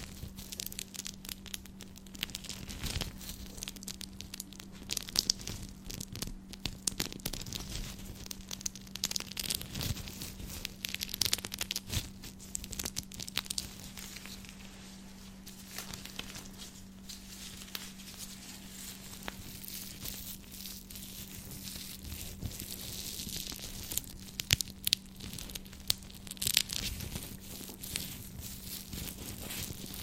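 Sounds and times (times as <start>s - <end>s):
ASMR scratching with gloves: 0.0s - 30.0s.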